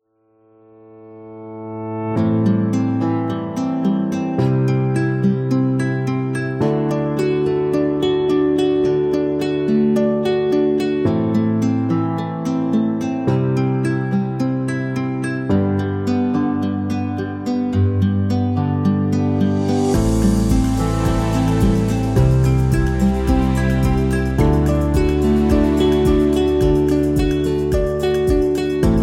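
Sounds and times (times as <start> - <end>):
inspiring acoustic guitar music: 2.2 - 29.0.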